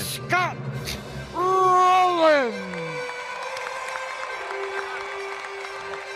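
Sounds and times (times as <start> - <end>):
speech: 0.3 - 1.5
golf clap applause sound effect: 2.6 - 6.1.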